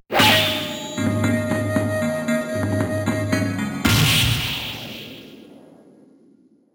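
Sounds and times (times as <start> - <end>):
musical stinger: 0.6 - 5.0.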